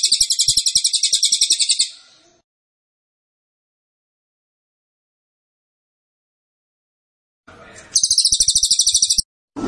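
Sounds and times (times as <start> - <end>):
cililin singing a metallic trill: 0.0 - 2.1, 7.8 - 9.2.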